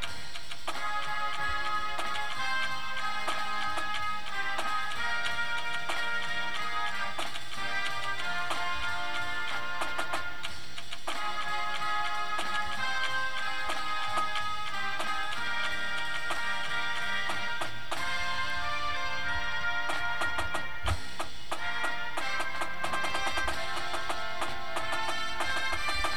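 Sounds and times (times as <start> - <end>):
drumline snare drum: 0.0 - 26.1
music: 0.0 - 26.1.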